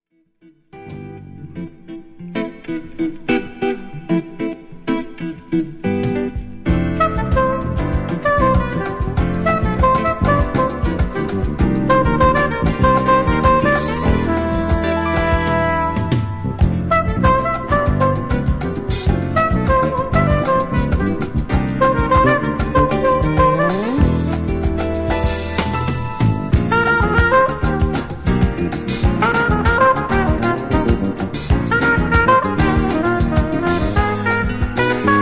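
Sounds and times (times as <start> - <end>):
saxophone: 0.4 - 35.1.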